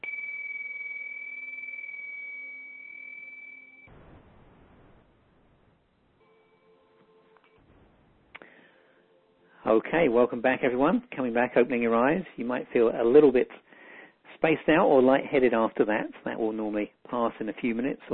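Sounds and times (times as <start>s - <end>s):
bell rung to end meditation: 0.0s - 3.9s
speech: 9.6s - 13.6s, 14.4s - 18.1s.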